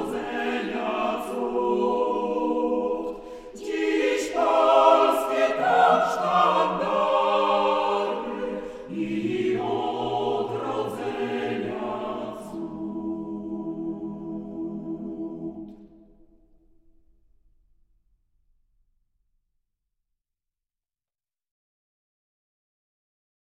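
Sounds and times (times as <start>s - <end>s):
hymn: 0.0s - 16.0s.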